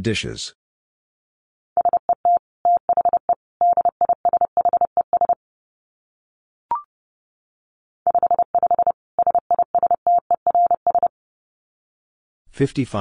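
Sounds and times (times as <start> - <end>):
speech: 0.0 - 0.6, 12.6 - 12.9
Morse code tones at 30 wpm: 1.8 - 5.4, 8.1 - 11.1.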